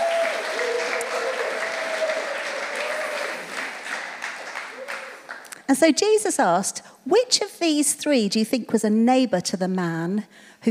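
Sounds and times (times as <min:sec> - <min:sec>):
audience clapping: 0:00.0 - 0:05.7
speech: 0:05.7 - 0:10.6.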